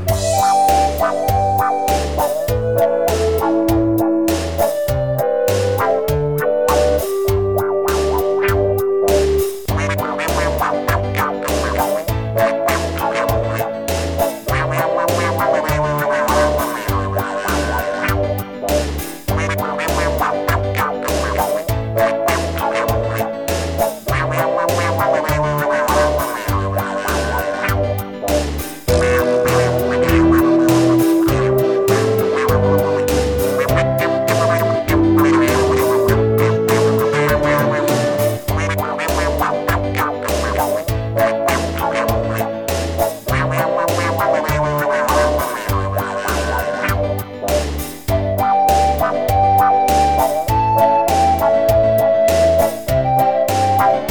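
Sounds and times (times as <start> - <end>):
wah kazoo: 0.1 - 18.3, 19.3 - 27.8, 28.9 - 54.1.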